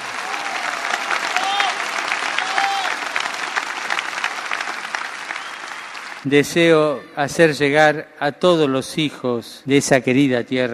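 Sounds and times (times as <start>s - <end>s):
cheers and whistles: 0.0s - 4.2s, 5.1s - 6.2s
large crowd applause at festival celebrating Our Lady of Luján: 0.0s - 6.3s
speech: 6.2s - 10.7s.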